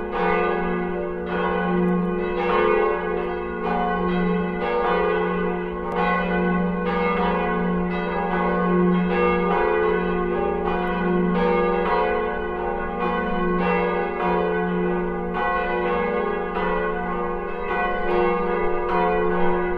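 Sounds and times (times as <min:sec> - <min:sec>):
church bells ringing on Sundays in Ordinary Time: 0:00.0 - 0:19.7.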